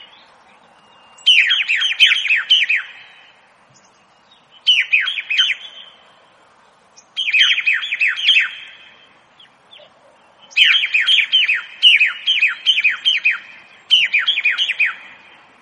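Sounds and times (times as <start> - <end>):
birdsong chirps and trills: 0.0 - 15.6.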